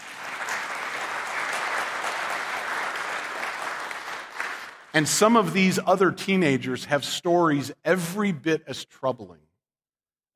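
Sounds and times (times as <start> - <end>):
audience clapping: 0.0 - 5.6
speech: 5.0 - 9.5.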